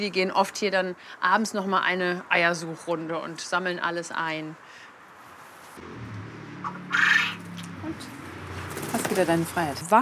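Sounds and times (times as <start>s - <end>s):
speech: 0.0s - 4.8s, 9.1s - 10.0s
quail calling: 6.6s - 7.6s.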